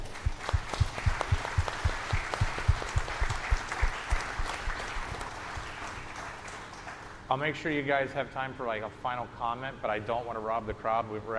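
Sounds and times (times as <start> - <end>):
audience applause: 0.0 - 7.3
speech: 7.3 - 11.3.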